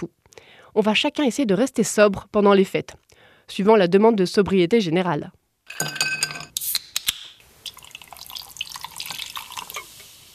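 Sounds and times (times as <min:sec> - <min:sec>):
speech: 0:00.0 - 0:06.0
glasses clinking for toast: 0:05.7 - 0:06.6
drinks pouring into glasses: 0:07.6 - 0:10.0
trickling: 0:07.7 - 0:09.8.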